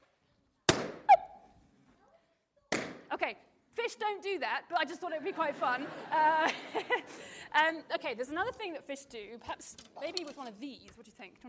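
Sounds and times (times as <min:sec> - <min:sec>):
balloons popping: 0:00.6 - 0:01.5, 0:02.7 - 0:03.1
speech: 0:03.3 - 0:11.4
laughter: 0:04.9 - 0:07.5.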